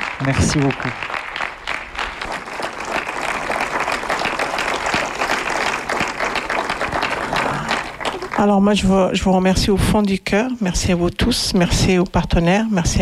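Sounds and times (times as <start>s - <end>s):
audience applause for a guest at a school event: 0.0s - 8.7s
speech: 0.2s - 1.2s, 8.4s - 13.0s.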